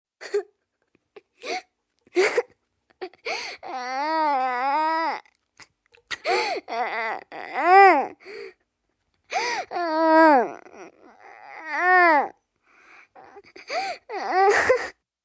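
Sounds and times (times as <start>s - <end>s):
child sobbing and whining in pain: 0.2s - 0.5s, 1.2s - 5.3s, 6.1s - 8.6s, 9.3s - 12.4s, 13.0s - 15.0s.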